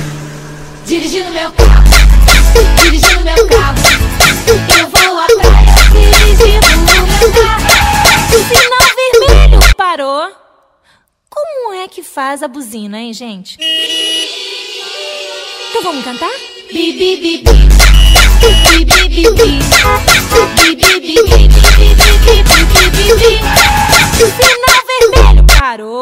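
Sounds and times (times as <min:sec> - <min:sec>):
funk music: 0:00.9 - 0:09.8, 0:14.8 - 0:25.6.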